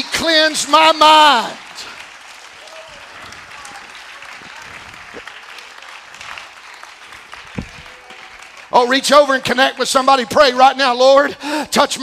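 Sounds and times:
audience clapping hands: 0:00.0 - 0:10.8
speech: 0:00.2 - 0:01.6, 0:08.7 - 0:12.0.

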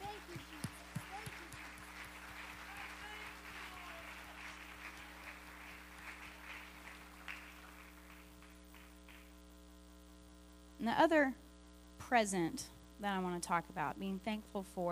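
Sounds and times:
audience clapping hands: 0:00.0 - 0:09.4
speech: 0:10.8 - 0:11.4, 0:12.1 - 0:14.9.

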